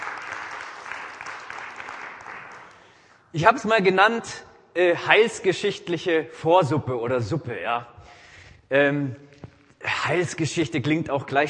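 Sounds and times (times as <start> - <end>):
audience applause: 0.0 - 2.8
speech: 3.3 - 9.4, 10.1 - 11.4.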